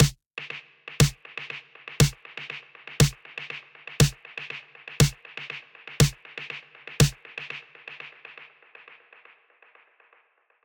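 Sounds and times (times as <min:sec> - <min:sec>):
snare drum: 0:00.0 - 0:08.4.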